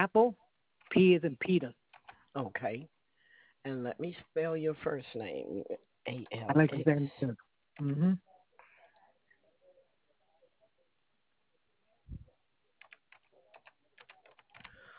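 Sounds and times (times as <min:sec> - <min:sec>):
speech: 0:00.0 - 0:03.0, 0:03.6 - 0:08.3
typing on a computer keyboard: 0:01.9 - 0:02.2, 0:12.8 - 0:14.9.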